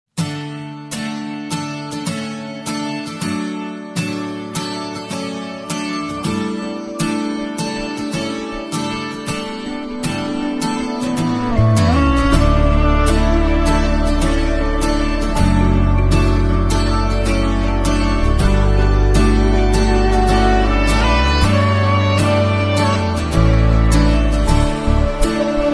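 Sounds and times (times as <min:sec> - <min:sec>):
instrumental music: 0:00.2 - 0:25.7.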